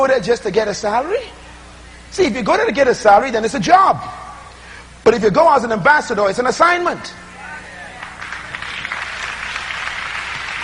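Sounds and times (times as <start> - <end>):
speech: 0.0 - 1.4, 2.1 - 4.2, 5.0 - 7.2
audience applause: 7.9 - 10.6.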